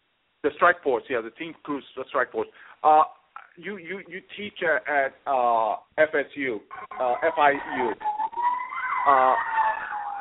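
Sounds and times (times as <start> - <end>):
speech: 0.4 - 8.2, 9.0 - 9.6
fire engine siren: 6.7 - 10.2.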